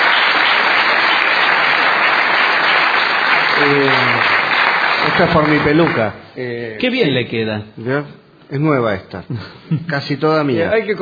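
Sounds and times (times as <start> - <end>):
crowd applauding: 0.0 - 6.2
speech: 5.1 - 11.0.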